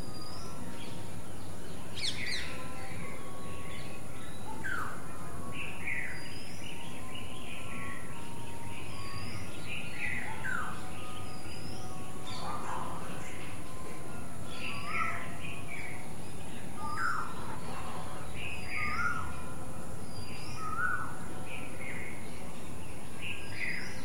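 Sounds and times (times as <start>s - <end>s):
many birds: 0.0s - 24.0s.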